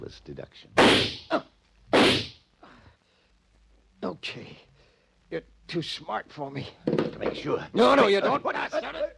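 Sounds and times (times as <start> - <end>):
speech: 0.1 - 2.3, 4.2 - 4.7, 5.3 - 9.1
gunshot fired into bedding under covers: 0.8 - 1.2, 2.0 - 2.3.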